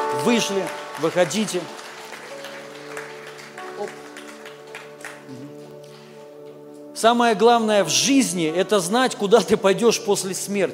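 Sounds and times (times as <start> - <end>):
audience applause: 0.0 - 5.3
speech: 0.2 - 1.8, 3.8 - 4.0, 5.3 - 5.5, 7.0 - 10.7.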